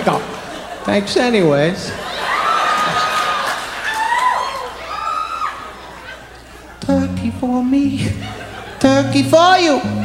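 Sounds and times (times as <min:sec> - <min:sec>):
speech: 0:00.0 - 0:02.1, 0:06.9 - 0:10.0
laughter: 0:00.0 - 0:04.9, 0:05.5 - 0:07.2, 0:07.8 - 0:10.0
audience clapping and cheering: 0:02.2 - 0:05.9.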